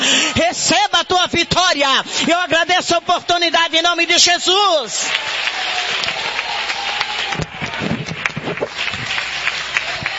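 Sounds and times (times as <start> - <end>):
speech: 0.5 - 8.1
audience applause: 5.0 - 10.1.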